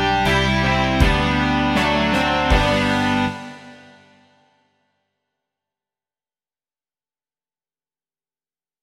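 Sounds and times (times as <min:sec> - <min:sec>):
rock music: 0:00.0 - 0:04.2.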